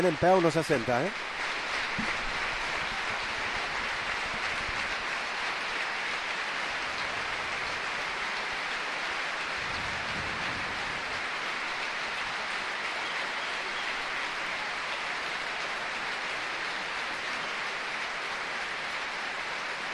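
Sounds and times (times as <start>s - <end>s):
speech: 0.0s - 1.3s, 2.0s - 2.2s
stadium crowd applauding: 0.0s - 19.9s.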